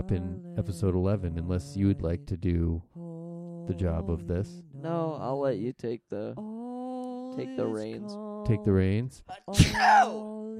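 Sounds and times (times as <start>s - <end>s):
speech: 0.0s - 2.9s, 3.7s - 6.5s, 7.4s - 10.5s
sneeze: 9.6s - 10.1s.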